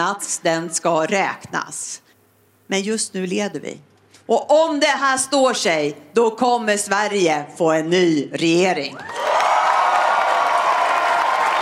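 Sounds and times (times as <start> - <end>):
speech: 0.0 - 2.1, 2.7 - 9.4
crowd roaring and cheering at a Swedish Left Party leader's election speech: 9.0 - 11.6.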